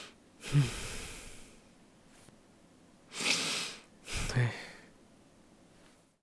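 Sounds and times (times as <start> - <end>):
man sighing, breathing in through nose and out through mouth: 0.4 - 1.5, 4.1 - 4.9.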